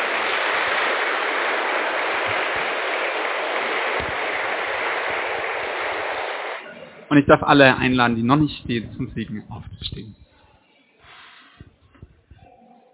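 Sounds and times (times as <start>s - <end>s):
audience applauding musicians: 0.0s - 6.6s
speech: 7.1s - 10.2s.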